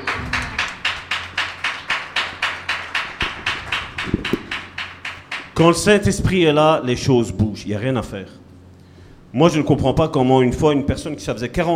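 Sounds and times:
applause: 0.0s - 5.6s
speech: 5.6s - 8.4s, 9.3s - 11.7s.

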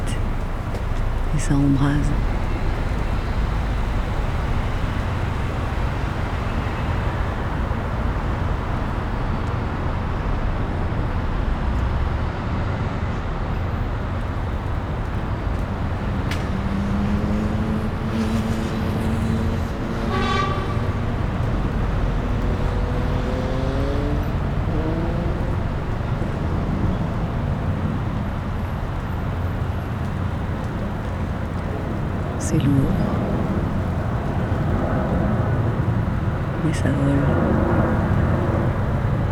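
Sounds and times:
city traffic from a London rooftop: 0.0s - 39.3s
speech: 1.4s - 2.4s
horn toots: 19.8s - 21.6s.

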